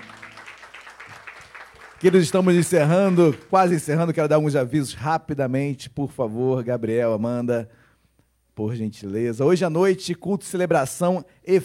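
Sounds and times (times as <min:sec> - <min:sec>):
audience applause: 0:00.0 - 0:03.8
speech: 0:02.0 - 0:07.8, 0:08.6 - 0:11.6.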